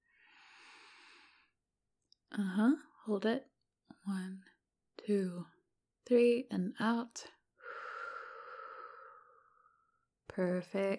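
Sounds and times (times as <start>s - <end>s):
person breathing in through the nose during a guided breathing exercise: 0.1s - 1.5s, 7.6s - 9.9s
speech: 2.4s - 7.4s, 10.4s - 10.9s.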